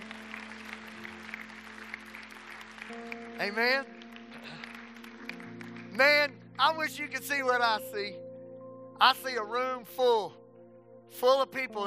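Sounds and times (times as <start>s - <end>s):
audience clapping hands: 0.0s - 7.8s
speech: 2.9s - 4.6s, 6.0s - 8.2s, 9.0s - 10.4s, 11.1s - 11.8s.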